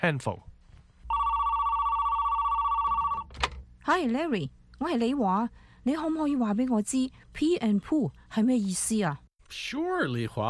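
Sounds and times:
speech: 0.0s - 0.5s, 3.9s - 10.4s
telephone ringing as a call is placed: 1.1s - 3.3s.

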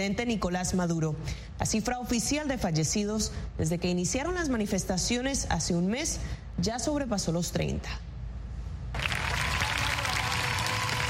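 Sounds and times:
speech: 0.0s - 8.1s
large crowd applause: 9.0s - 11.0s.

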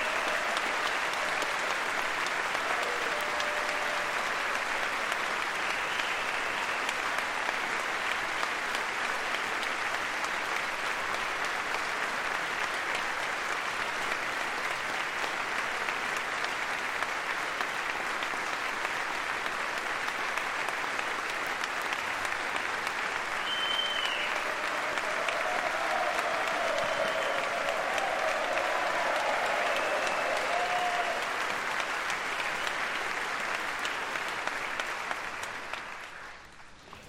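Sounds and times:
audience applause by cabinet and meeting participants after a speech: 0.0s - 37.0s.

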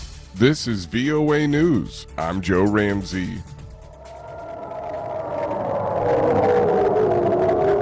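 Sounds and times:
speech: 0.4s - 3.6s
air raid sirens in Ashkelon Israel: 3.6s - 7.8s.

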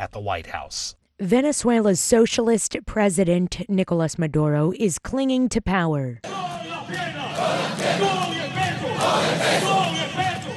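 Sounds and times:
speech: 0.0s - 8.3s
troops clapping rhythmically: 6.3s - 10.5s
troops singing: 6.3s - 10.5s.

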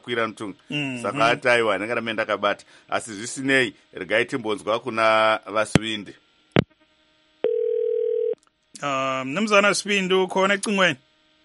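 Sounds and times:
speech: 0.0s - 6.2s, 8.8s - 11.0s
telephone ringing unanswered: 7.4s - 8.4s.

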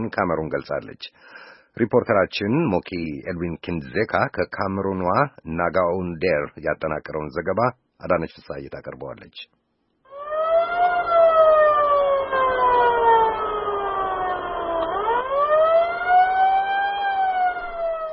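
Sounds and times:
speech: 0.0s - 9.6s
ambulance siren carrying people wounded in border clashes: 10.1s - 18.1s.

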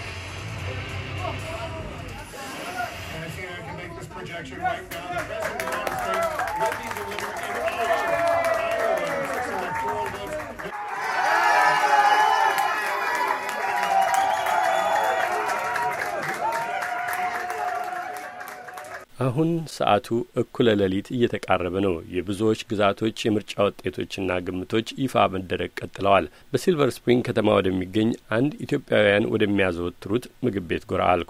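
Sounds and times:
crowd applause and cheering at an election-night results gathering: 4.1s - 19.1s
speech: 4.4s - 7.4s, 19.3s - 31.2s.

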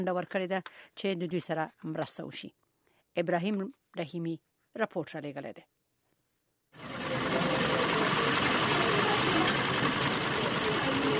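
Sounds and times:
speech: 0.0s - 2.6s, 3.2s - 5.7s
sewing machines in a women's tailoring workshop hall in Paktia: 6.8s - 11.1s.

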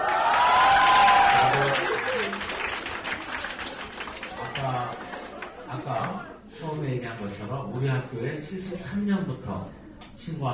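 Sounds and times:
students cheering: 0.0s - 2.9s
speech: 7.8s - 10.5s.

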